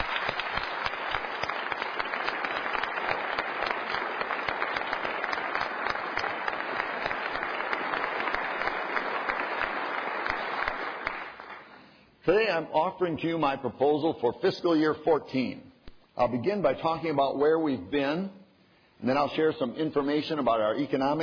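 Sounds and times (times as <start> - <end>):
applause: 0.0 - 12.0
speech: 12.3 - 15.6, 16.2 - 18.4, 19.0 - 21.2.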